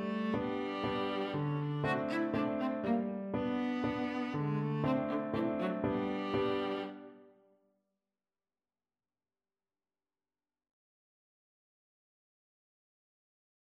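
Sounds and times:
viola playing waltzes: 0.0s - 7.3s.

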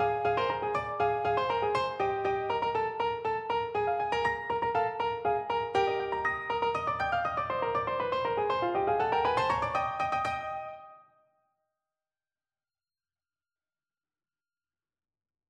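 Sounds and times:
piano duet: 0.0s - 11.0s.

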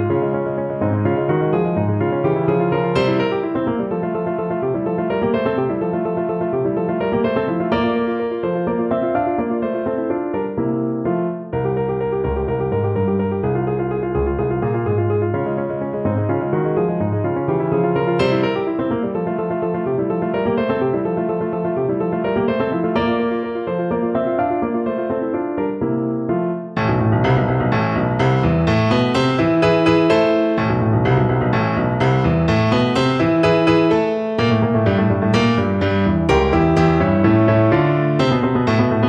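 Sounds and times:
piano piece: 0.0s - 39.0s.

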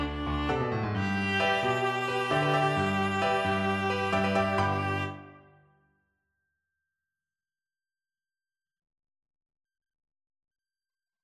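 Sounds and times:
viola: 0.0s - 5.6s.

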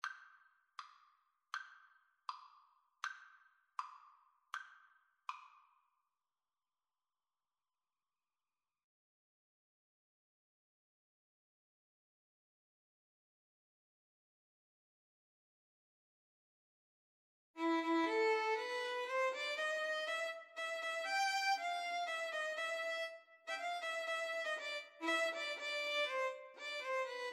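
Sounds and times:
violin and guitar duet: 17.6s - 27.3s.

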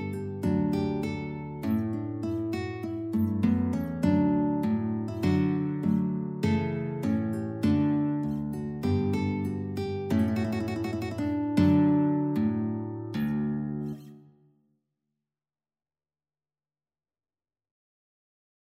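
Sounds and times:
guitar trio: 0.0s - 14.3s.

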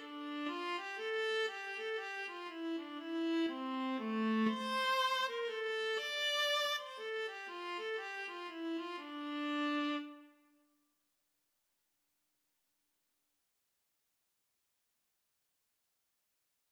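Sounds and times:
viola duet: 0.0s - 10.2s.

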